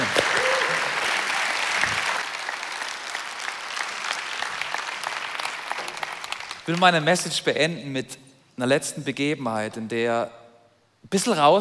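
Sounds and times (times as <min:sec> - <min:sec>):
audience clapping: 0:00.0 - 0:07.0
speech: 0:06.7 - 0:10.4, 0:11.0 - 0:11.5.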